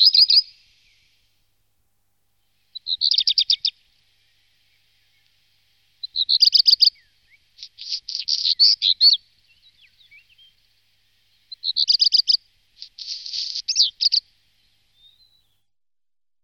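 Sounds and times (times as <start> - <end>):
black redstart calling: 2.7 - 3.8, 6.0 - 10.6, 11.5 - 14.3.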